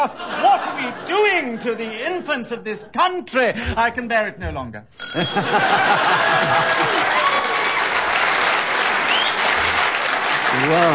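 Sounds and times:
laughter: 0:00.0 - 0:02.7, 0:05.2 - 0:07.8
speech: 0:00.0 - 0:07.2, 0:10.6 - 0:10.9
audience applause: 0:06.0 - 0:10.9.

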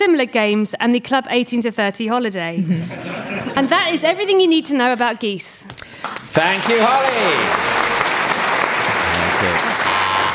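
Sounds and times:
speech: 0:00.0 - 0:07.8
laughter: 0:02.6 - 0:04.0
continuous loud applause: 0:06.0 - 0:10.3
electronic quiz buzzer: 0:09.8 - 0:10.3.

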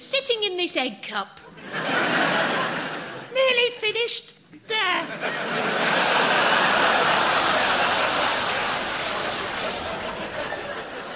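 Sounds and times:
speech: 0:00.2 - 0:02.0, 0:03.4 - 0:06.2
laughter: 0:01.5 - 0:03.3, 0:05.0 - 0:11.1
toilet flushing: 0:06.7 - 0:11.1.

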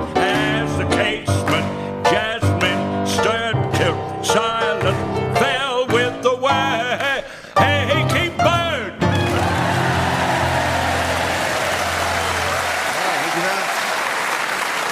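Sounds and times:
singing over piano: 0:00.0 - 0:12.1
crowd clapping slightly out of time: 0:09.2 - 0:14.8.

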